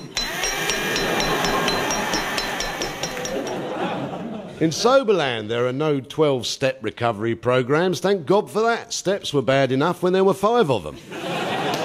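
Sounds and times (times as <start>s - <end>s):
DIY hammering metallic clinks: 0.0s - 3.8s
laughter: 0.9s - 2.2s, 3.1s - 4.8s, 11.0s - 11.8s
speech: 4.6s - 11.2s.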